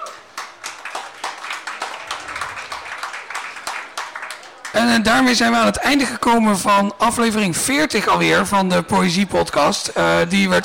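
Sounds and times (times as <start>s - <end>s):
audience applause: 0.0s - 5.0s
speech: 4.8s - 10.6s.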